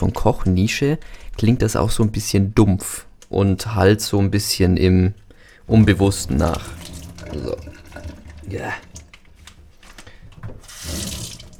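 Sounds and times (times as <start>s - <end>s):
speech: 0.0s - 7.7s, 8.5s - 8.9s
tap water running into a kitchenette sink while draining mozzarella: 5.7s - 11.5s.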